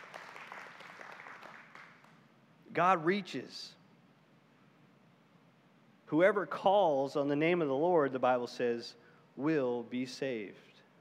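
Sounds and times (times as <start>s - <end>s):
audience clapping: 0.0s - 2.2s
speech: 2.8s - 3.8s, 6.1s - 10.7s.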